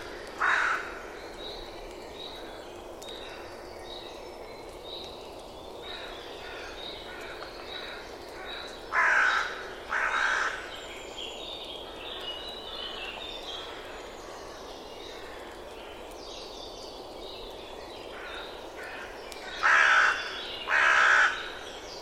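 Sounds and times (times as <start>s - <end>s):
bird giving harsh cawing calls: 0.4s - 1.0s, 8.9s - 10.7s, 18.2s - 21.6s.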